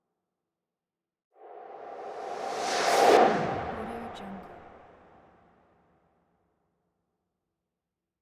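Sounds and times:
swooshes: 1.4s - 5.3s.

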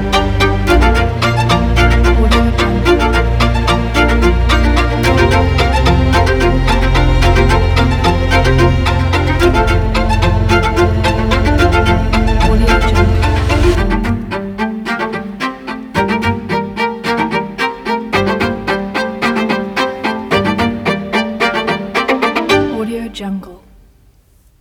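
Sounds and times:
cinematic orchestral strings: 0.0s - 23.5s.

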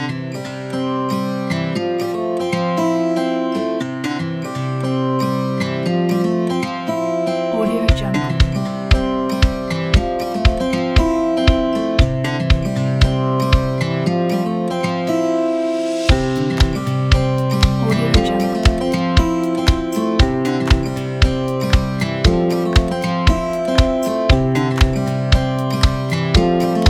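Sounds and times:
acoustic folk music: 0.0s - 26.8s.

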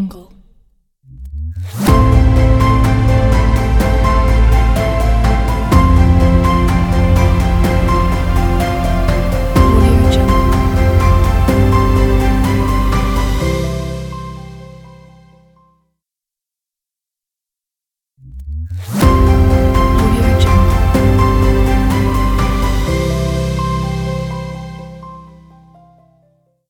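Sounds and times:
Valentine's Day music: 1.9s - 15.5s, 19.0s - 26.3s.

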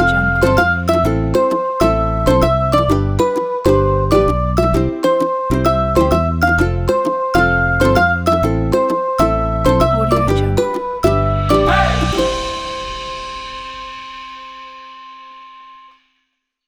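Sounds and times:
upbeat kids music: 0.0s - 12.6s.

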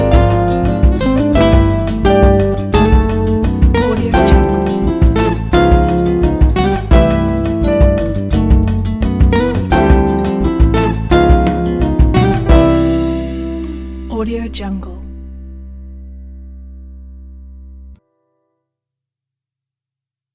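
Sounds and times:
bossa samba travel music: 0.0s - 15.4s.

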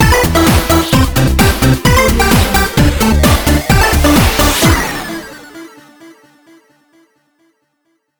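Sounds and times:
8-bit chiptune ident logo jingle: 0.1s - 6.2s.

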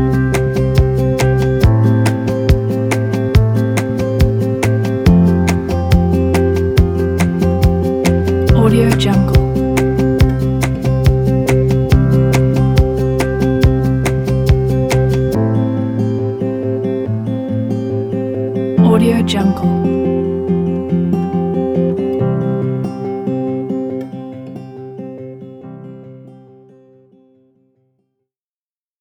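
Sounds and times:
folk piano music: 0.0s - 26.3s.

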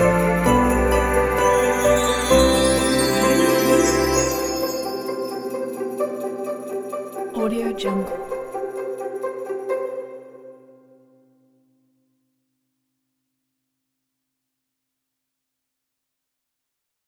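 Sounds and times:
christmas bells: 0.0s - 10.3s.

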